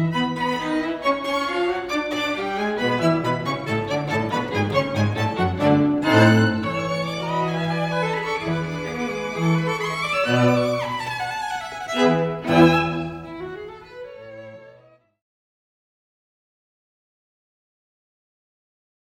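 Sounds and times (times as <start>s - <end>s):
string instruments playing a rondo: 0.0s - 15.1s.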